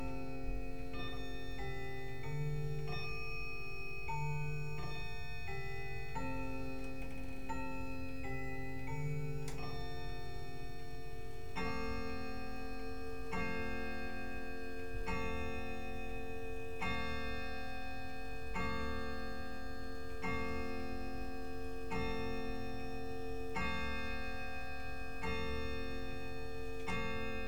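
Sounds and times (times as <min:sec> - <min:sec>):
grand clock: 0:00.0 - 0:27.4.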